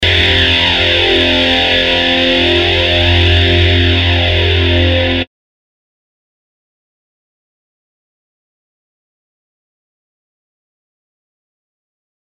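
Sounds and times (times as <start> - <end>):
guitar power drone: 0.0 - 5.3.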